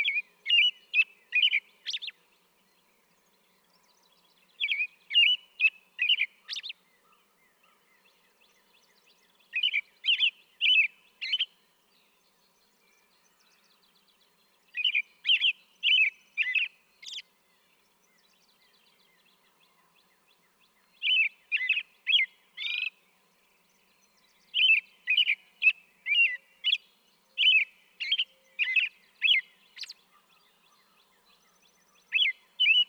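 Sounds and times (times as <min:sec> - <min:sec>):
American robin singing: 0:00.0 - 0:32.8.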